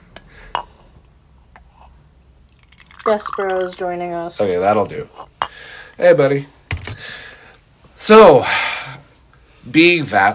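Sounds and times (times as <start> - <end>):
tea being poured into a cup: 2.3 - 3.8
speech: 3.1 - 6.6, 8.0 - 8.7, 9.7 - 10.3.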